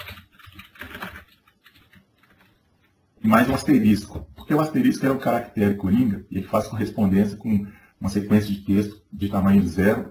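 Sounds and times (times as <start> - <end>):
computer keyboard keys pressed for Alt Enter in Excel: 0.0 - 2.5
speech: 3.2 - 10.0.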